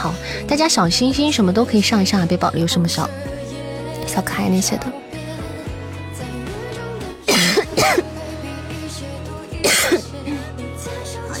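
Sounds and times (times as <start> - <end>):
speech: 0.0 - 3.4, 4.1 - 5.1
coughing: 7.3 - 8.2, 9.6 - 10.2.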